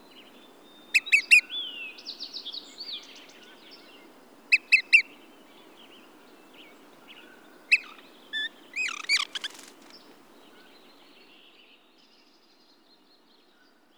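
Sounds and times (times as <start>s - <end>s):
Olive-sided Flycatcher calling: 0.0s - 6.1s, 6.7s - 11.1s.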